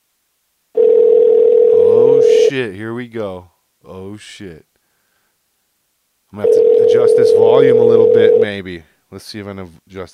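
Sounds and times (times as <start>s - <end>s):
steady telephone tone from a phone being tried out: 0.8s - 2.5s, 6.4s - 8.6s
speech: 2.5s - 4.7s, 6.3s - 10.1s.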